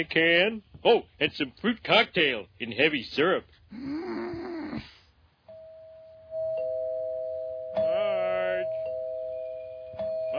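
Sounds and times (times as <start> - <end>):
speech: 0.0 - 4.2
rough snoring-like rumble: 3.7 - 5.1
electronic doorbell chiming two notes: 5.5 - 10.3.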